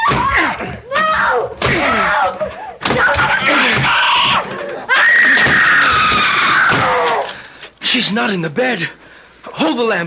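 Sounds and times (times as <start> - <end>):
thud of door being forced: 0.0 - 7.3
speech: 8.0 - 10.0.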